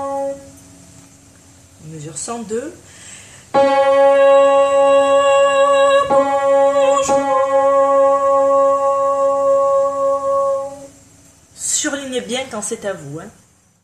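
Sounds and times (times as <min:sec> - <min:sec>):
tenor singing: 0:03.6 - 0:10.9.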